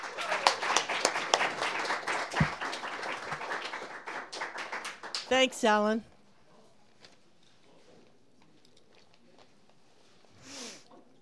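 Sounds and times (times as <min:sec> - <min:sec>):
audience applause welcoming a performer at an open mic: 0:00.0 - 0:05.5
speech: 0:05.3 - 0:06.1.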